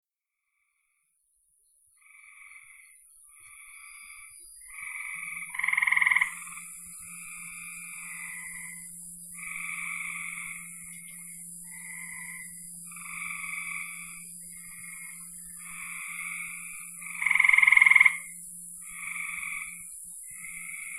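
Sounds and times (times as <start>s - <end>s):
frogs calling: 2.0s - 20.9s
low hum: 2.9s - 20.9s.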